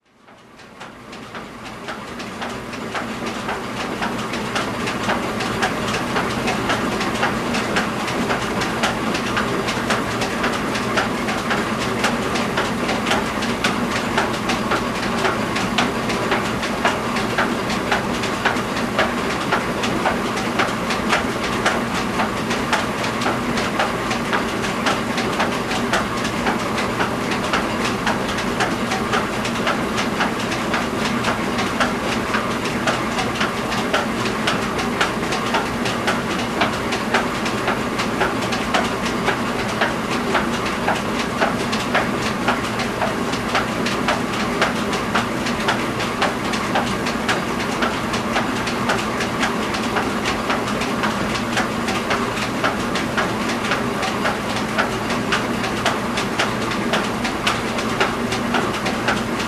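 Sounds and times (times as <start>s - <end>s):
sawmill machinery: 2.8s - 59.4s.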